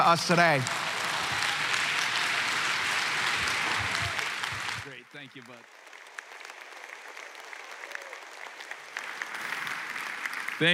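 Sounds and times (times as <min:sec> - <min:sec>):
speech: 0:00.0 - 0:00.8
church congregation clapping to welcome a pastor: 0:00.0 - 0:10.7.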